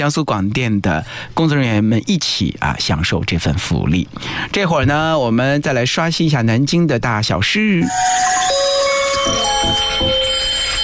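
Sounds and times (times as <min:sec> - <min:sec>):
speech: 0:00.0 - 0:10.3
alarm clock ringing: 0:07.8 - 0:10.8.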